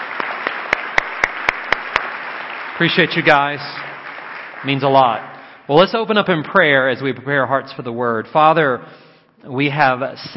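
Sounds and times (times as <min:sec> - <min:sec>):
crowd clapping: 0:00.0 - 0:05.6
speech: 0:02.8 - 0:03.8, 0:04.6 - 0:10.3.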